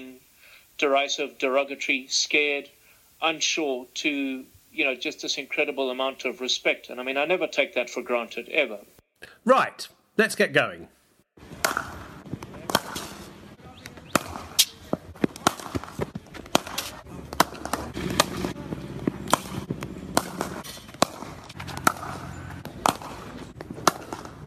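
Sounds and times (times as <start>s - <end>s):
speech: 0.8s - 11.8s
cricket balls striking bats in the nets: 11.6s - 13.2s, 13.9s - 24.4s.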